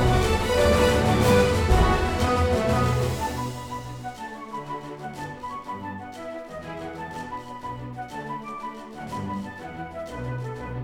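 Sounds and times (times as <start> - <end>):
pinball multiball music loop: 0.0 - 4.2.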